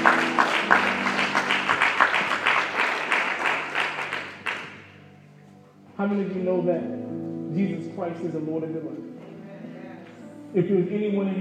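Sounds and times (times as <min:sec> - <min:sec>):
crowd clapping: 0:00.0 - 0:05.0
speech: 0:06.0 - 0:09.0, 0:10.5 - 0:11.3.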